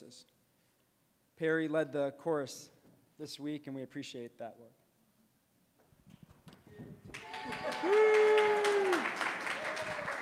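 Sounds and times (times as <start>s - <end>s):
speech: 0.1s - 0.4s, 1.4s - 4.8s
audience applauding: 7.1s - 10.1s
long held whoop: 7.2s - 10.1s
voices cheering: 7.2s - 10.1s.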